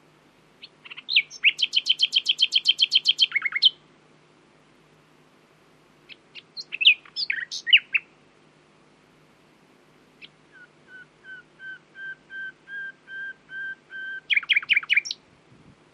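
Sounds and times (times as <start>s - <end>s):
common nightingale Luscinia megarhynchos singing: 0.6s - 3.8s, 6.0s - 8.2s, 10.2s - 15.3s.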